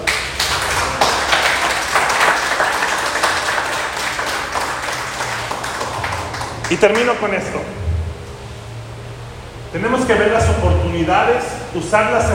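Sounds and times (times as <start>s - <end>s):
audience applause: 0.0s - 7.3s
speech: 6.7s - 7.8s, 9.7s - 12.3s.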